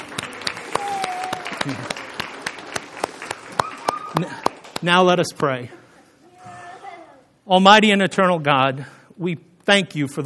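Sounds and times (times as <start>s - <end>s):
congregation applause after a child's baptism in church: 0.0s - 5.0s
speech: 1.6s - 2.0s, 4.2s - 5.8s, 7.5s - 10.2s.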